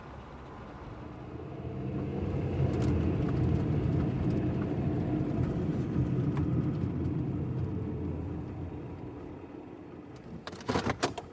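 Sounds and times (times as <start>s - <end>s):
truck engine rumbling: 0.0s - 10.4s.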